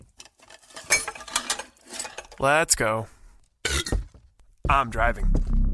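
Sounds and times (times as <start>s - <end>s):
glass dropped into a sink: 0.7s - 2.3s
speech: 2.4s - 3.2s, 4.7s - 5.6s.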